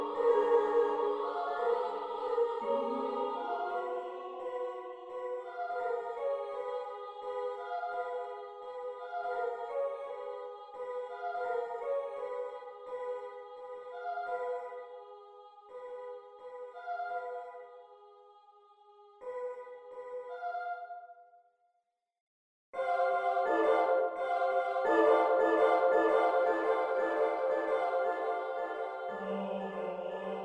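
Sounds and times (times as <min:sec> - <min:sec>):
female choir singing in Hebrew: 0:00.0 - 0:21.3, 0:22.8 - 0:30.4.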